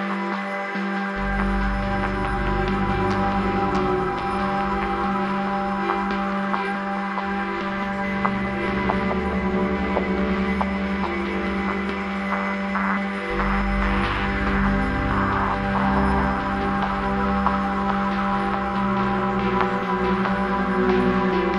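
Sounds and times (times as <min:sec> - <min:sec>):
underwater drone: 0:00.2 - 0:21.5.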